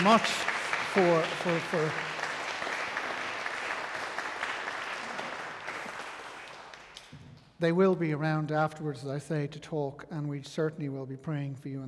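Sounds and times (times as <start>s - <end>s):
speech: 0.0s - 2.2s, 7.6s - 11.8s
audience applause: 0.0s - 7.1s.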